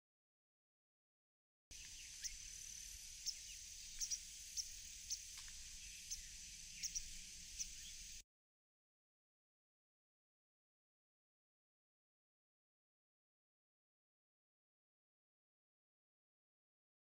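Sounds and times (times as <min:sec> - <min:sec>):
White wagtail calls: 0:01.7 - 0:08.2.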